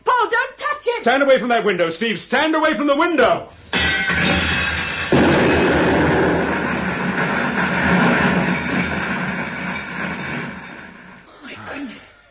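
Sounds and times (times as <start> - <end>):
speech: 1.0 - 4.2
suitcase bomb exploding: 4.1 - 11.3.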